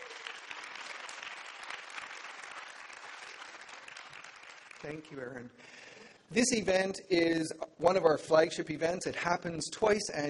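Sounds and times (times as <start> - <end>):
audience applause: 0.0 - 5.4
speech: 4.8 - 10.2.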